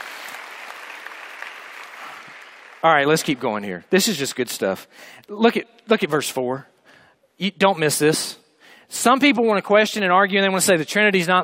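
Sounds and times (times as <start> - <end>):
audience clapping: 0.0 - 3.6
speech: 2.8 - 6.7, 7.4 - 8.3, 8.9 - 11.4.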